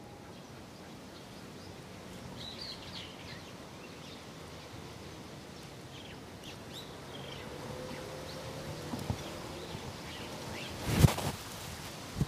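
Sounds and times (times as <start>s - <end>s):
many birds chirping in a large tree in a park: 0.0s - 10.9s
steady outdoor hiss: 0.0s - 12.2s.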